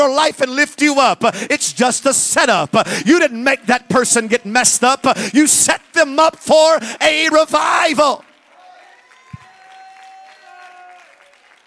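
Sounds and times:
speech: 0.0 - 8.3
light audience clapping: 3.9 - 11.6.

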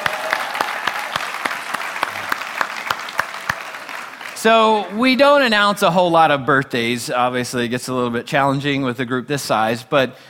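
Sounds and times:
audience clapping: 0.0 - 5.2
speech: 4.4 - 10.2.

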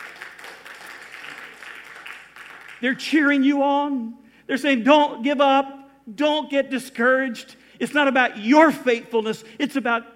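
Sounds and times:
audience applause: 0.0 - 2.8
speech: 2.8 - 10.1.

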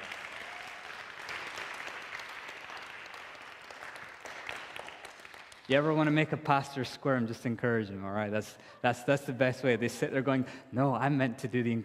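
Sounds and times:
audience applause: 0.0 - 5.8
speech: 5.7 - 11.8.

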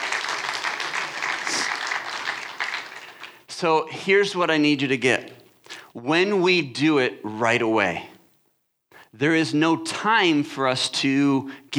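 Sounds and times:
audience applause: 0.0 - 3.5
speech: 3.6 - 5.3, 6.0 - 8.1, 9.2 - 11.7.

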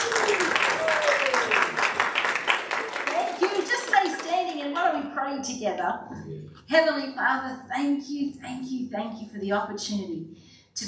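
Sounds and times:
audience applause at an Easter Sunday church service: 0.0 - 4.6
speech: 5.4 - 10.8.

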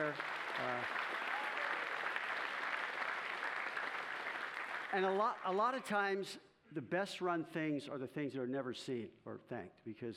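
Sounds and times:
speech: 0.0 - 1.0, 4.9 - 10.1
church congregation clapping for the tech team: 0.0 - 5.8.

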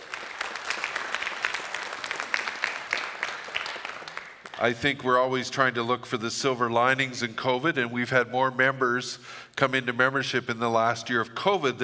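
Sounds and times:
audience clapping: 0.0 - 5.0
speech: 4.6 - 11.8.

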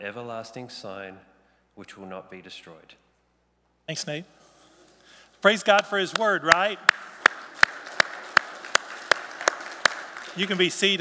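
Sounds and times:
speech: 0.0 - 3.0, 3.9 - 4.4, 5.4 - 7.1, 10.4 - 10.9
audience clapping in unison: 5.4 - 10.9.

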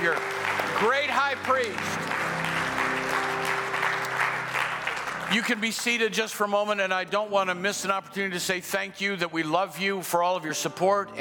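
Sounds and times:
audience clapping hands: 0.0 - 6.9
speech: 5.3 - 11.1.

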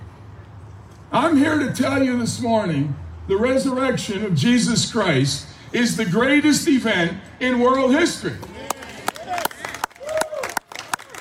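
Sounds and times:
speech: 1.1 - 8.6
audience applause: 8.6 - 11.1.

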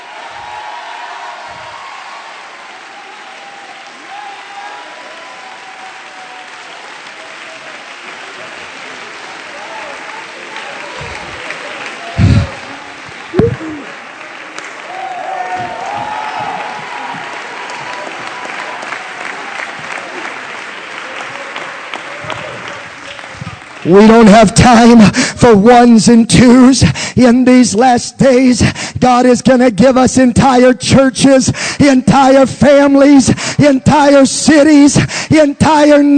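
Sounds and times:
audience clapping: 0.0 - 25.1
speech: 23.9 - 36.1.

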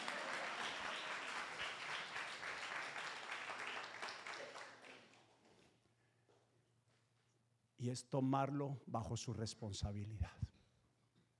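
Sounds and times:
audience applause: 0.0 - 5.2
speech: 7.8 - 10.5.

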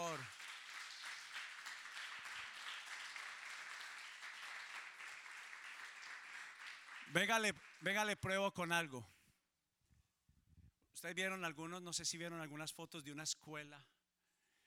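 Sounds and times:
audience applause: 0.0 - 8.2
speech: 7.1 - 9.1, 11.0 - 14.0.

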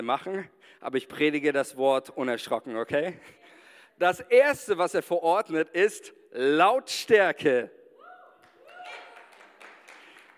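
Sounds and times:
speech: 0.0 - 7.8
sparse subdued audience applause: 8.4 - 10.3.

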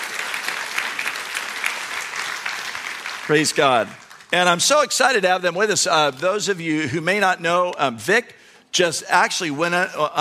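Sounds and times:
church congregation applauding to welcome two speakers at a morning service: 0.0 - 5.6
speech: 3.3 - 10.1.

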